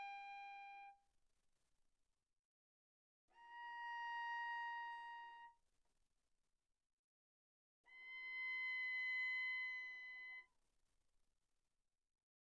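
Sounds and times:
bowed viola on the D string played pianissimo: 3.3 - 5.6, 7.9 - 10.5.

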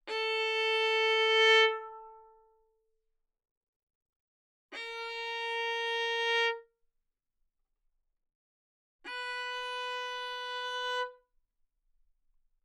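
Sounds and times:
violin bowed fortissimo on the A string: 0.1 - 2.5, 4.8 - 6.7, 9.1 - 11.2.

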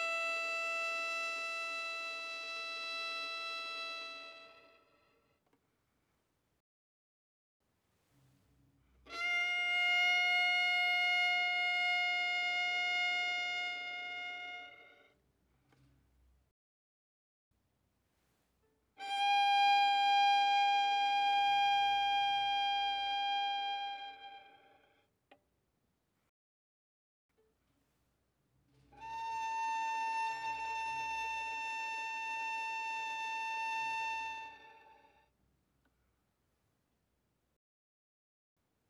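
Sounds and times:
violin played arco fortissimo on the D string: 0.0 - 5.0, 9.1 - 15.1, 19.0 - 24.8, 28.9 - 35.2.

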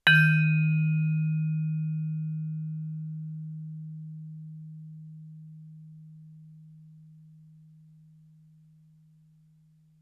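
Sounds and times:
vibraphone sustained loud E-flat 3 note: 0.0 - 6.6.

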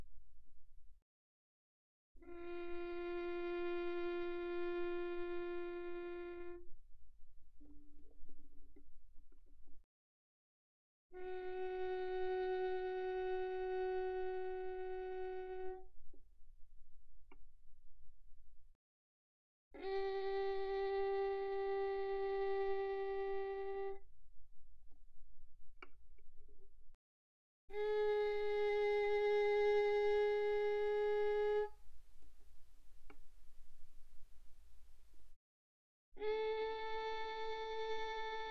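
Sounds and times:
violin bowed pianissimo on the G string: 2.2 - 6.8, 11.2 - 15.9, 19.8 - 24.0, 27.7 - 35.4, 36.2 - 38.4.

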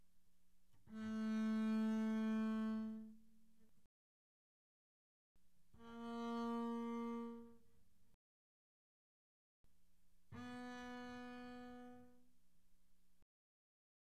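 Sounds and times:
double bass bowed pianissimo on the G string: 0.8 - 3.6, 5.8 - 7.7, 10.3 - 12.4.

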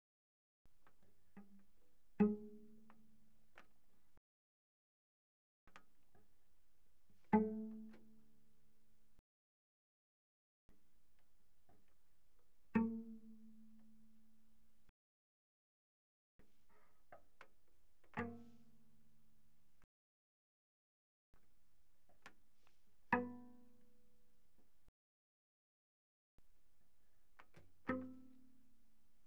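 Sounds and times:
cello pizzicato pp sul C Ab3 Db4: 0.7 - 4.2, 5.7 - 9.2, 10.8 - 14.9, 16.4 - 19.8, 21.4 - 24.9, 26.4 - 29.2.

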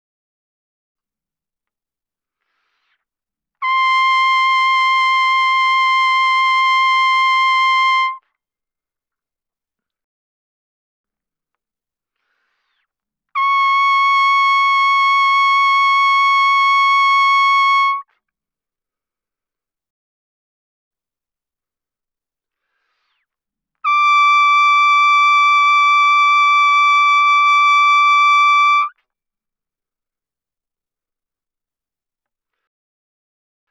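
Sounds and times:
trumpet vibrato mezzo-forte C6 D6: 3.6 - 8.2, 13.4 - 18.0, 23.9 - 28.9.

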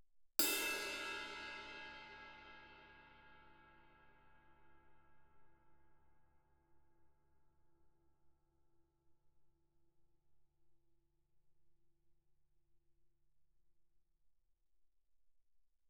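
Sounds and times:
suspended cymbal crash played with stick: 0.4 - 3.3.

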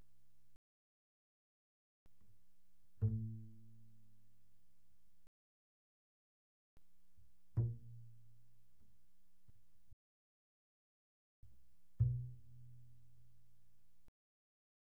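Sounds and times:
double bass pizzicato mezzo forte on the A string: 2.8 - 4.5, 7.2 - 9.8, 11.5 - 13.9.

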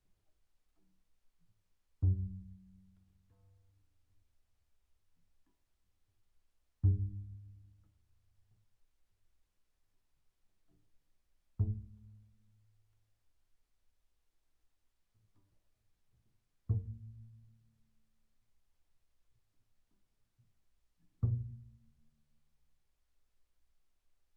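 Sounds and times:
very soft double bass pizzicato on the E string: 2.0 - 3.3, 6.8 - 7.9, 11.6 - 12.3, 16.7 - 17.4, 21.2 - 21.8.

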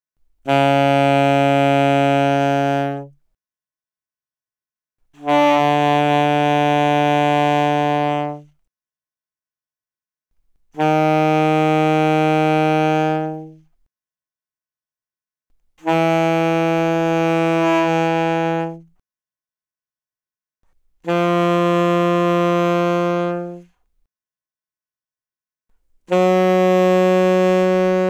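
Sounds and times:
loud alto saxophone notes without vibrato: 0.4 - 3.2, 5.1 - 8.6, 10.7 - 13.8, 15.8 - 19.0, 21.0 - 23.9, 26.0 - 28.0.

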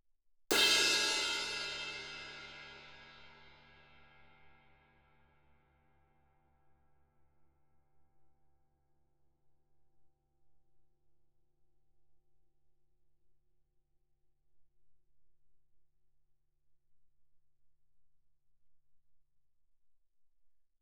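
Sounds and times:
suspended cymbal crash hit with stick shoulder fortissimo: 0.5 - 4.0.

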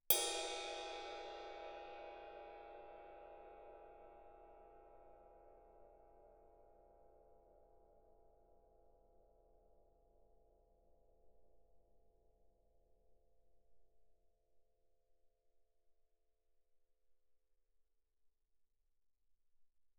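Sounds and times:
suspended ride cymbal struck loudly with stick: 0.1 - 3.4.

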